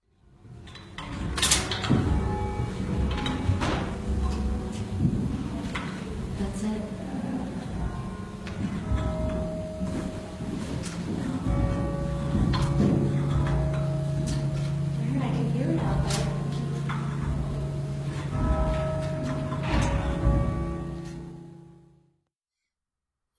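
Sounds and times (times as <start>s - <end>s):
church bells struck by cord-pulled hammers: 0.3s - 22.2s.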